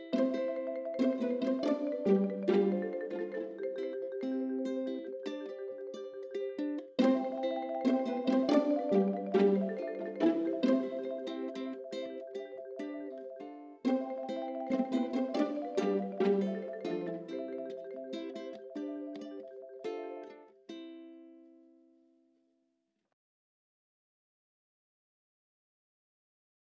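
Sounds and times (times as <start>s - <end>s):
quirky underscore music: 0.0s - 6.4s, 7.0s - 20.3s.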